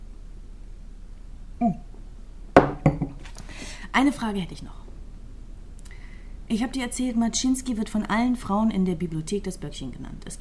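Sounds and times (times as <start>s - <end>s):
speech: 1.6s - 1.8s, 4.0s - 4.8s, 6.5s - 10.3s
glasses clinking in a toast: 2.6s - 3.2s.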